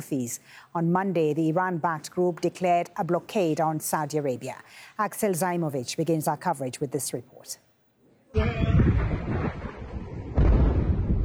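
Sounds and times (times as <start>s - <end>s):
speech: 0.0s - 7.6s
multiple explosions from U.S. strikes in Chabahar, Iran: 8.6s - 11.2s.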